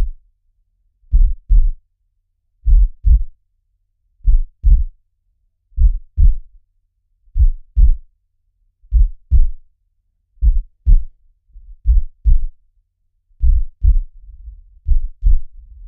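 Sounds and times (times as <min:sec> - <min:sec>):
medium slow heartbeat: 0:01.1 - 0:01.8, 0:02.6 - 0:03.4, 0:04.2 - 0:05.0, 0:05.8 - 0:06.5, 0:07.4 - 0:08.0, 0:08.9 - 0:09.6, 0:10.4 - 0:12.6, 0:13.4 - 0:15.8.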